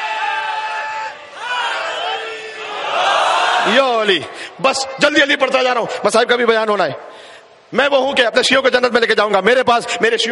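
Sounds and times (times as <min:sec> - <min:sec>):
crowd at a Shia religious gathering shouting a chant: 0:00.1 - 0:03.7
speech: 0:03.7 - 0:07.2, 0:07.7 - 0:10.2.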